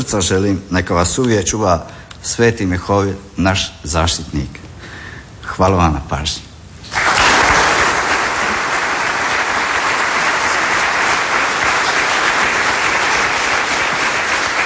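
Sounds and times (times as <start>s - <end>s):
speech: 0.0s - 4.6s, 5.5s - 6.5s
audience applause at a Police Day ceremony honoring award recipients: 6.8s - 14.6s.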